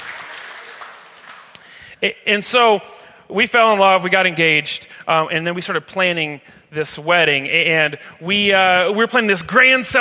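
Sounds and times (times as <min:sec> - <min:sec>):
audience applause: 0:00.0 - 0:01.6
speech: 0:02.0 - 0:09.9.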